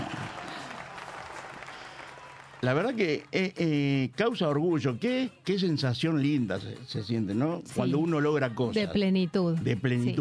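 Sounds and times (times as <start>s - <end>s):
applause: 0.0s - 3.9s
speech: 2.6s - 10.1s.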